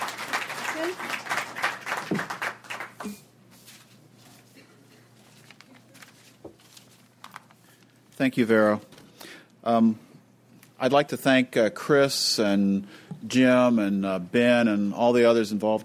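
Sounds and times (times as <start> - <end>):
audience applause: 0.0 - 3.1
speech: 8.2 - 8.9, 9.6 - 10.0, 10.8 - 15.8.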